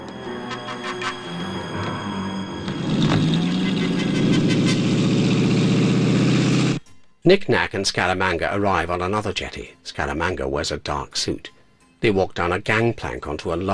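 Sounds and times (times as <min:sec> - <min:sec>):
small motor launch engine running at a jetty: 0:00.0 - 0:06.8
speech: 0:07.2 - 0:13.7.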